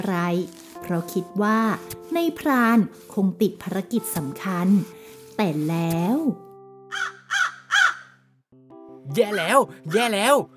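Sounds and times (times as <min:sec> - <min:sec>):
speech: 0:00.0 - 0:07.1, 0:09.1 - 0:10.5
large iron-beaked crow cawing: 0:06.9 - 0:08.2, 0:09.9 - 0:10.5.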